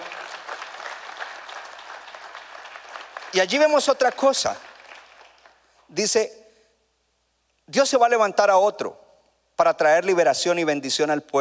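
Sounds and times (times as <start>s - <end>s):
audience applauding: 0.0s - 5.7s
speech: 3.3s - 4.7s, 5.9s - 6.4s, 7.7s - 9.0s, 9.6s - 11.3s.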